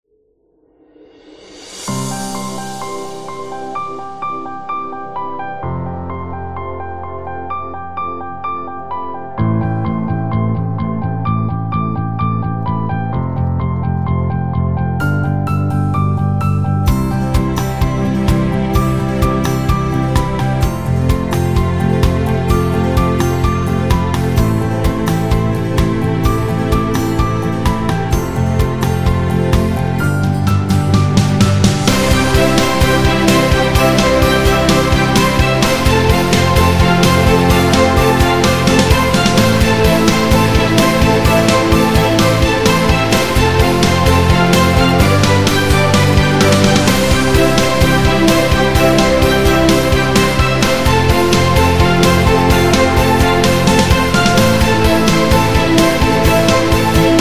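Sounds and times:
cinematic upbeat music: 1.4 - 57.2.

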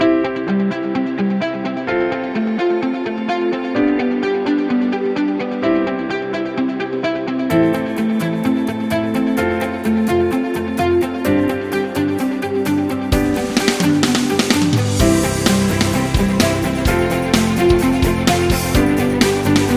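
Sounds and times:
epic inspirational corporate music: 0.0 - 19.7.

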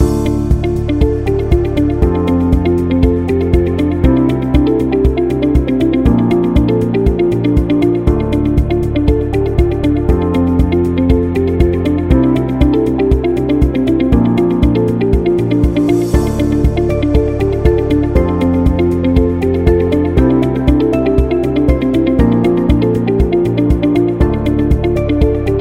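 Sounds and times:
real estate corporate music loop: 0.0 - 25.6.

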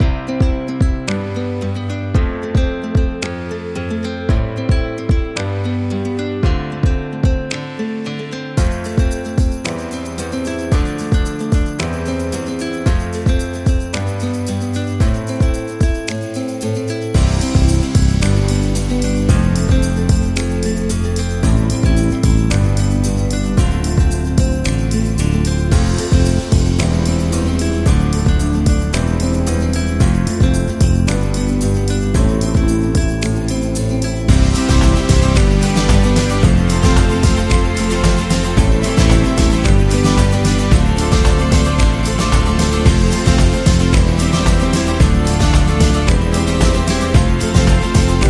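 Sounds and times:
positive indie folk music: 0.0 - 48.2.

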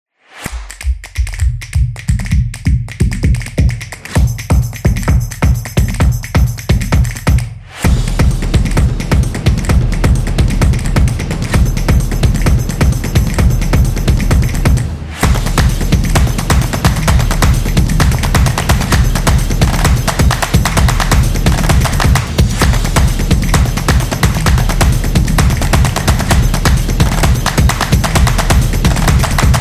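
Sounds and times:
motion graphics drums: 0.4 - 29.5.

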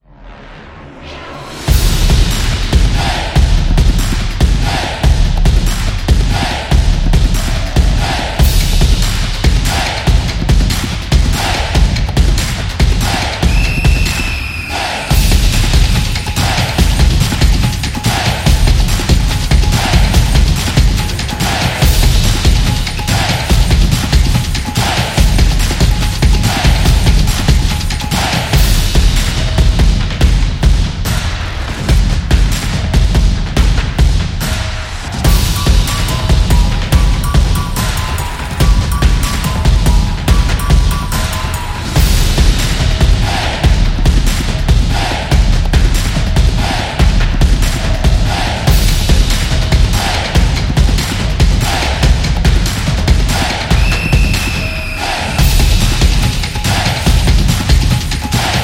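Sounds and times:
stadium sport drums: 1.6 - 58.6.

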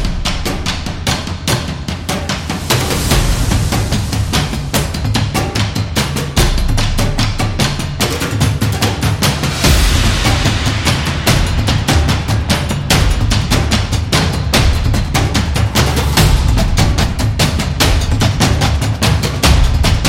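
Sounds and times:
tribal cinematic drums: 0.0 - 20.0.

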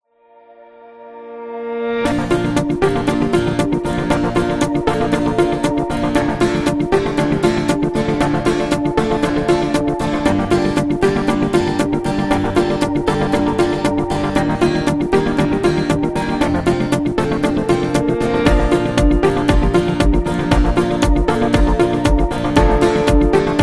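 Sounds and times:
positive corporate music: 2.1 - 23.6.

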